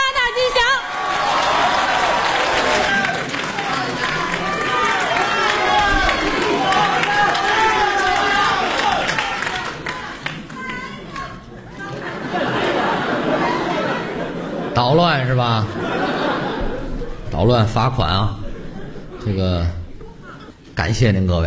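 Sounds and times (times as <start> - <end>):
crowd applauding: 0.0 - 14.8
crowd cheering and shouting: 0.0 - 19.3
laughter: 1.2 - 20.7
speech: 14.8 - 15.8, 17.4 - 18.4, 19.2 - 19.8, 20.8 - 21.4.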